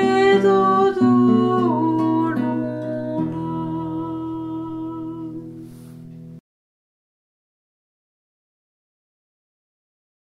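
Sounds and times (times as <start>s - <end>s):
Breton lullaby: 0.0s - 5.6s.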